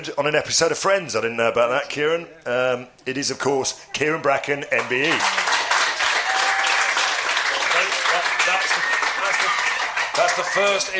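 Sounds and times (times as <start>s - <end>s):
speech: 0.0s - 5.5s, 10.4s - 10.9s
audience round of applause: 4.9s - 10.9s.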